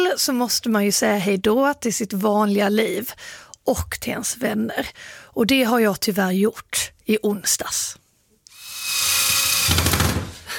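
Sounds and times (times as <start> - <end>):
speech: 0.2 - 8.0
power screwdriver driving screws while a World Cup sign is assembled: 8.5 - 10.3.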